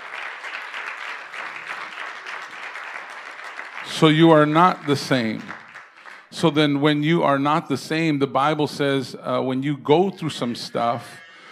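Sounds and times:
audience applause: 0:00.0 - 0:06.3
speech: 0:03.8 - 0:05.6, 0:06.3 - 0:11.2.

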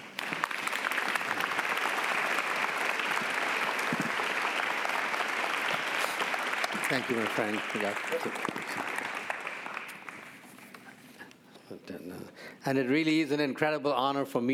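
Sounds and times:
audience applause welcoming a speaker to the stage: 0:00.0 - 0:10.5
speech: 0:06.9 - 0:09.0, 0:12.7 - 0:14.5.

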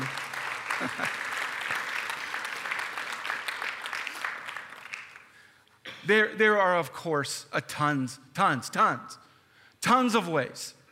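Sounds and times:
audience applause: 0:00.0 - 0:05.4
speech: 0:00.8 - 0:01.3, 0:06.1 - 0:09.2, 0:09.9 - 0:10.8.

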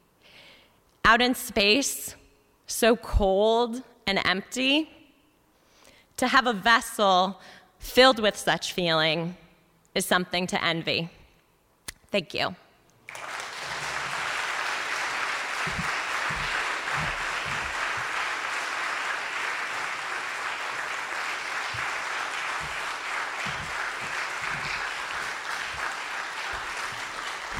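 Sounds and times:
speech: 0:01.1 - 0:05.0, 0:06.2 - 0:09.4, 0:10.0 - 0:11.2, 0:12.1 - 0:13.3
round of applause for storytellers: 0:13.0 - 0:27.5.

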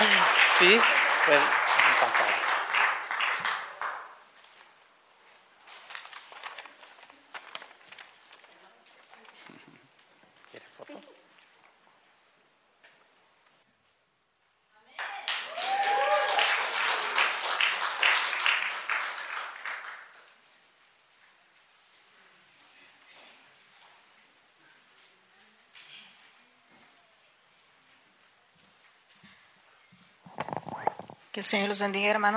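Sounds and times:
audience applause: 0:00.0 - 0:04.3, 0:15.0 - 0:20.3
speech: 0:00.6 - 0:01.6, 0:31.4 - 0:32.3.

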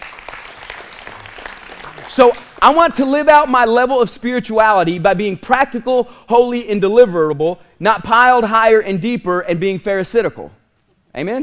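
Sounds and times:
crowd hand clapping: 0:00.0 - 0:02.9
speech: 0:02.1 - 0:11.4.

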